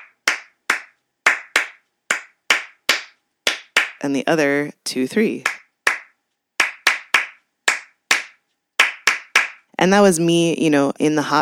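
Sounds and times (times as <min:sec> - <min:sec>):
layered hand claps in syncopated rhythm: 0:00.0 - 0:04.0, 0:05.4 - 0:09.7
speech: 0:04.0 - 0:05.6, 0:09.8 - 0:11.3.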